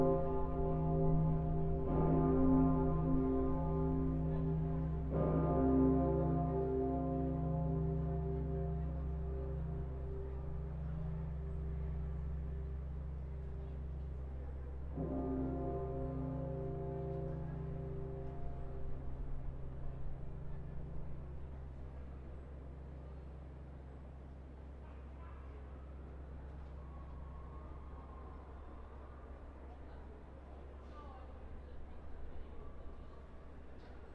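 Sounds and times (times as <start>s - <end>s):
north tower bell: 0.0s - 22.8s.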